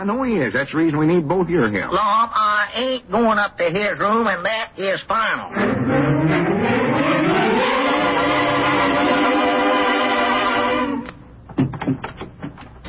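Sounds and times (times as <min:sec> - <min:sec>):
speech: 0:00.0 - 0:06.8
rising harmonic tone: 0:05.5 - 0:11.1.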